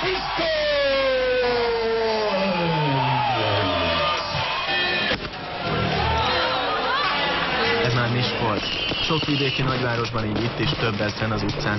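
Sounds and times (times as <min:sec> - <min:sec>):
New Year's Eve street crowd shouting and whooping: 0:00.0 - 0:09.0
speech: 0:09.1 - 0:11.7.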